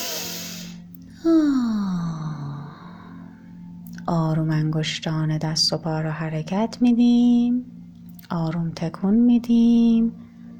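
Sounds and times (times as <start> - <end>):
deep forceful breath during guided meditation: 0.0 - 3.2
speech: 4.1 - 10.3.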